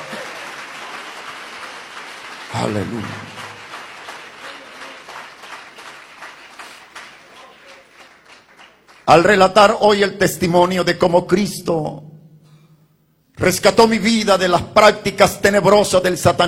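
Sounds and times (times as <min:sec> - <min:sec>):
audience applause: 0:00.0 - 0:09.1
speech: 0:02.5 - 0:03.4, 0:09.1 - 0:12.1, 0:13.4 - 0:16.4.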